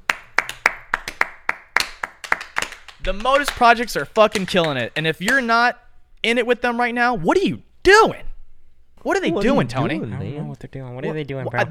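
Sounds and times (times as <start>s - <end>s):
hand clapping: 0.0s - 5.6s
speech: 3.0s - 8.3s, 9.0s - 11.6s.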